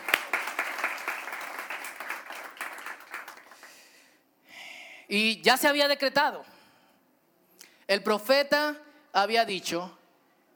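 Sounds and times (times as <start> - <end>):
audience applause for mothers: 0.0 - 4.0
speech: 5.1 - 6.5, 7.9 - 10.0.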